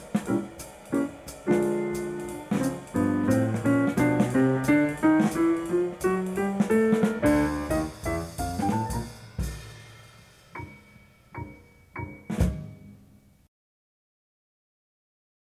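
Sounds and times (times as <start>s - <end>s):
double bass playing B flat blues: 0.4s - 9.2s.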